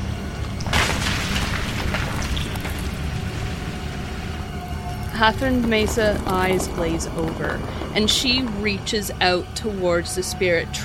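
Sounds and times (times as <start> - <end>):
rocks crashing down to the ground: 0.4 - 9.3
speech: 5.2 - 10.8.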